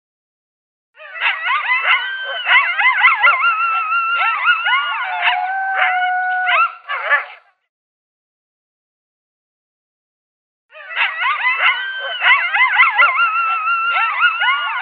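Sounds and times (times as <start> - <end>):
coyote locator call of yips and howls: 1.0 - 7.5, 10.7 - 14.8.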